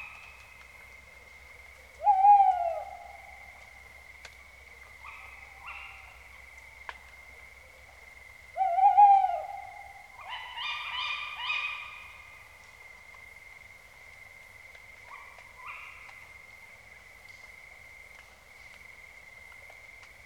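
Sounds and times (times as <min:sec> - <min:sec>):
owl hooting: 0:02.0 - 0:03.6, 0:08.6 - 0:11.8.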